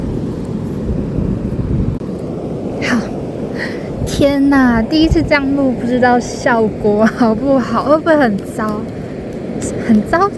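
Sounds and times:
ocean waves white noise: 0:00.0 - 0:10.3
speech: 0:04.2 - 0:09.0, 0:09.6 - 0:10.3.

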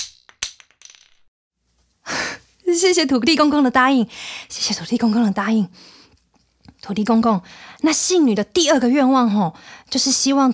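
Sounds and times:
wooden divination blocks clattering onto a hard floor: 0:00.0 - 0:01.3
speech: 0:02.7 - 0:06.0, 0:06.8 - 0:10.5.

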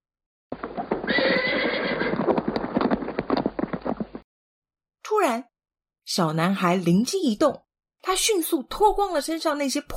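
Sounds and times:
horse-drawn carriage hooves clip-clopping: 0:00.5 - 0:04.2
horse whinnying: 0:00.8 - 0:04.1
speech: 0:05.2 - 0:05.5, 0:06.1 - 0:09.9.

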